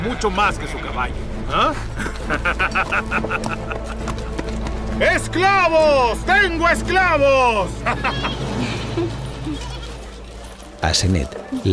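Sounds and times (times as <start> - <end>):
laughter: 0.0 - 4.6, 7.7 - 10.0
speech: 0.1 - 4.1, 5.0 - 8.4, 10.8 - 11.7
goats bleating at an outdoor market: 9.4 - 10.2.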